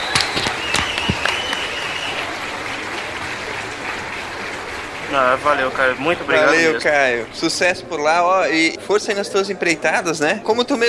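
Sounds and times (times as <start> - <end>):
enthusiastic applause: 0.0 - 7.7
speech: 5.1 - 10.8.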